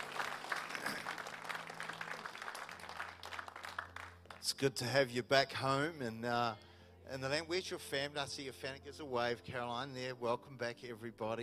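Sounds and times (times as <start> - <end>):
church congregation applauding: 0.0 - 4.6
speech: 4.5 - 11.4.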